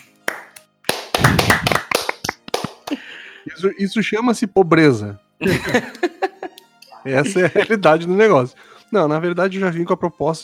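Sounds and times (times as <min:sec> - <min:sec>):
applause, hands clapping: 0:00.0 - 0:03.1
speech: 0:02.9 - 0:06.1, 0:07.0 - 0:10.4
laughter: 0:05.4 - 0:08.1.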